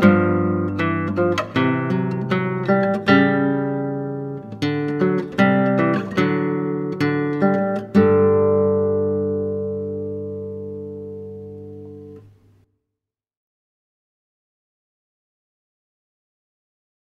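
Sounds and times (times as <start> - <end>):
classical guitar: 0.0 - 12.7.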